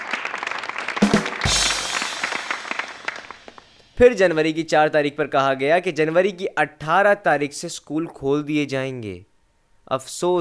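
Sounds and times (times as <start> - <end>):
crowd applauding: 0.0 - 3.8
speech: 4.0 - 9.3, 9.9 - 10.4.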